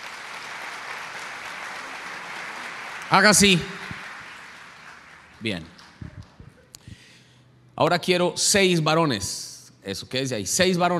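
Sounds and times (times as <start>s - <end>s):
audience applause: 0.0s - 6.4s
speech: 3.1s - 3.8s, 5.4s - 5.8s, 7.8s - 10.9s.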